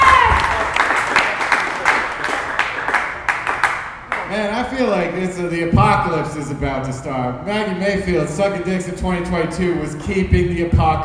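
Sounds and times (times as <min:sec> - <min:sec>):
crowd applauding: 0:00.0 - 0:04.4
speech: 0:04.8 - 0:11.0.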